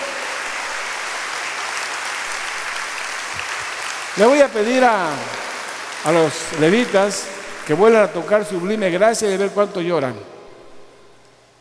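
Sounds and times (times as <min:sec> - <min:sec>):
audience applause: 0:00.0 - 0:08.6
speech: 0:04.2 - 0:05.4, 0:06.0 - 0:10.3.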